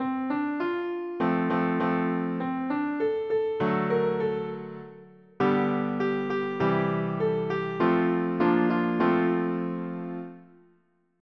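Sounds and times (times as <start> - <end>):
piano: 0.0 - 10.8.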